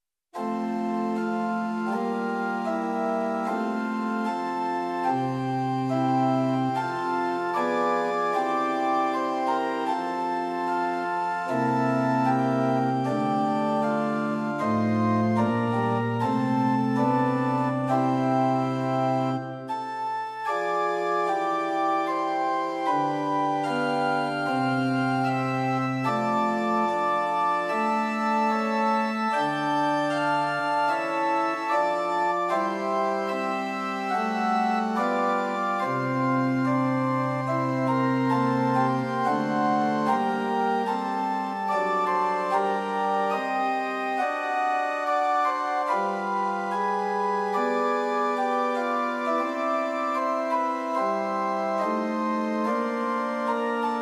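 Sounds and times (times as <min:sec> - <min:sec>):
liturgical organ at pitch 440 in equal temperament: 0:00.4 - 0:54.0.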